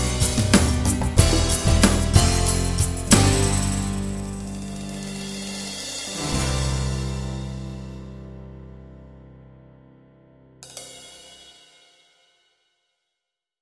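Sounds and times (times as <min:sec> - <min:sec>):
strummed pop music: 0:00.0 - 0:08.8.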